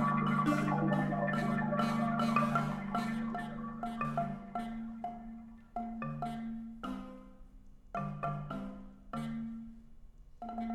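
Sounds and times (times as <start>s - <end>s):
computer music: 0.0s - 5.8s
gyil xylophone playing: 0.0s - 10.7s.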